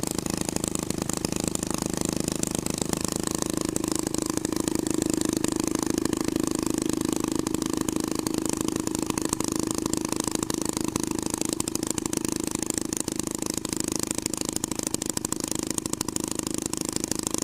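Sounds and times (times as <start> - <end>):
hot rod twin engine: 0.0 - 17.4.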